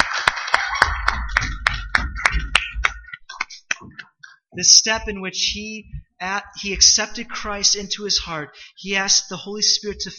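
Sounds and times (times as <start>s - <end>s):
audience applause: 0.0s - 3.6s
speech: 4.6s - 10.1s.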